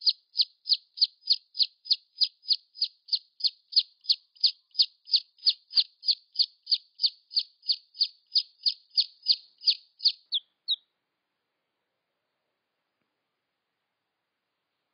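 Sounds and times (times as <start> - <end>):
red junglefowl chick peeps: 0.0 - 10.8.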